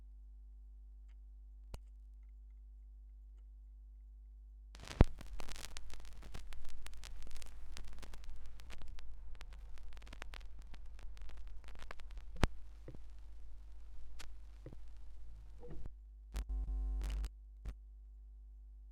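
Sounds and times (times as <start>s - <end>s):
vinyl record noise: 4.8s - 17.3s.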